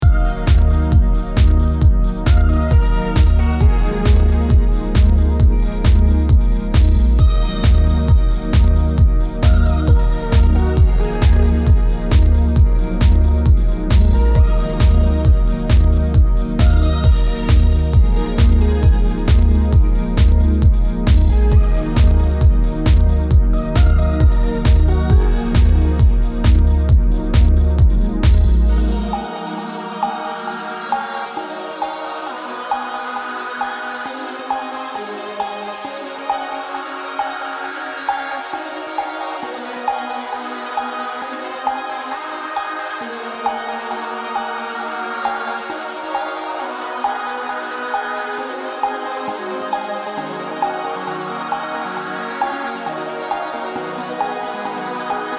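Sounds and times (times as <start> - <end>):
electronic dance lounge music: 0.0 - 55.3.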